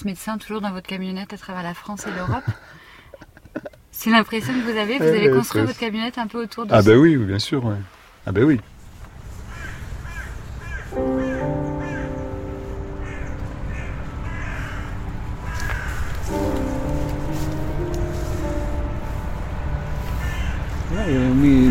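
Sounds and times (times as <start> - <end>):
speech: 0.0 - 2.8, 4.0 - 8.7
caged birds calling in harsh crow-like caws: 9.3 - 16.9, 20.0 - 21.6
steady low rumble: 12.4 - 21.7.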